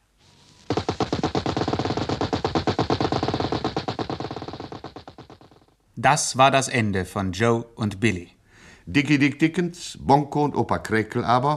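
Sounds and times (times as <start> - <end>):
machine gun fire: 0.7 - 5.7
speech: 6.0 - 11.5.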